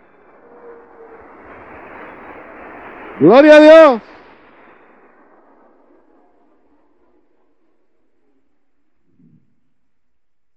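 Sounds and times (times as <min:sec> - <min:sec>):
loud applause: 0:03.0 - 0:04.0
speech: 0:03.2 - 0:04.1.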